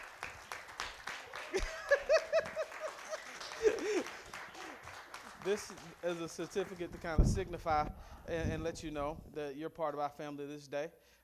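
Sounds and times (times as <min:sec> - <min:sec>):
church congregation applauding a new member: 0:00.0 - 0:07.6
cheering voices and laughter: 0:01.2 - 0:04.8
speech: 0:01.5 - 0:01.8, 0:05.5 - 0:11.2.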